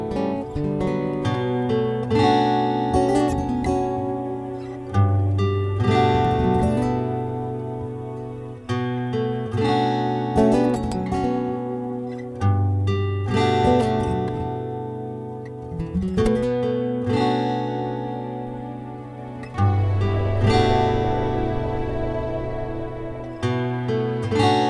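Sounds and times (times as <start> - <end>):
guitar: 0.0 - 24.6
whale calls: 19.4 - 24.0.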